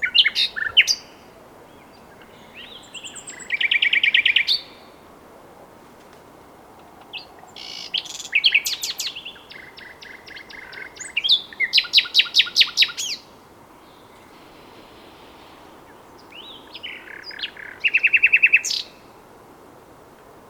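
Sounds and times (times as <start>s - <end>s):
common nightingale singing: 0.0s - 5.0s, 7.0s - 19.2s.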